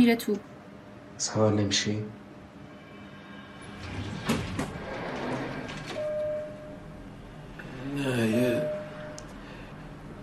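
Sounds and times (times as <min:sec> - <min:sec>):
speech: 0:00.0 - 0:00.6, 0:01.2 - 0:02.2, 0:08.0 - 0:08.8
elevator door sliding open: 0:03.5 - 0:09.2.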